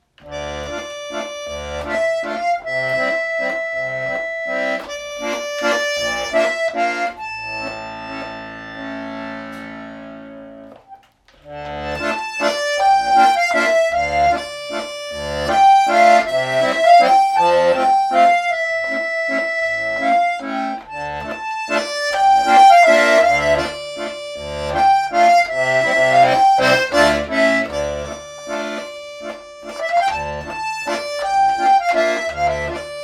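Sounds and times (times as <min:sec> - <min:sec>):
waltz: 0:00.0 - 0:33.0.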